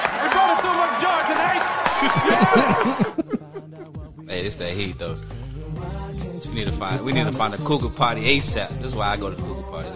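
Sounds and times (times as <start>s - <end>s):
audience applause: 0.0s - 3.2s
laughter: 1.8s - 4.1s
speech: 2.5s - 3.3s, 4.5s - 9.8s.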